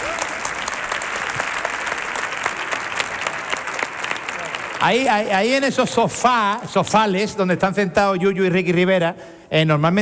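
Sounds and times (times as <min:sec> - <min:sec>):
audience applause: 0:00.0 - 0:05.8
speech: 0:04.8 - 0:09.9.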